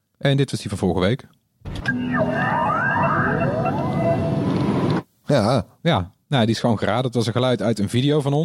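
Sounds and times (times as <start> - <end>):
speech: 0.2 - 4.7, 5.3 - 8.4
startup sound of the first electric Mini: 1.8 - 5.0.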